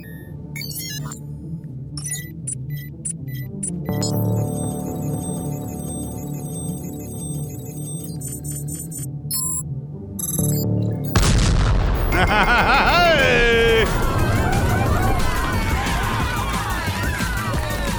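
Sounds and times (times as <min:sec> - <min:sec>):
short electronic beeping tones: 0:00.0 - 0:01.2, 0:02.0 - 0:09.6, 0:10.2 - 0:12.6
torpedo hit explosion sound effect with rumbling: 0:11.2 - 0:16.2
laughter: 0:12.1 - 0:17.9.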